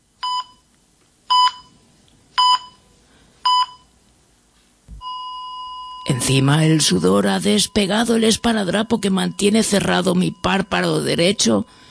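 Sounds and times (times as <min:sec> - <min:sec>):
medical feeding pump alarm beeping: 0:00.2 - 0:00.6, 0:01.3 - 0:01.7, 0:02.4 - 0:02.8, 0:03.4 - 0:03.9, 0:05.0 - 0:06.3, 0:07.4 - 0:11.9
speech: 0:06.1 - 0:11.9.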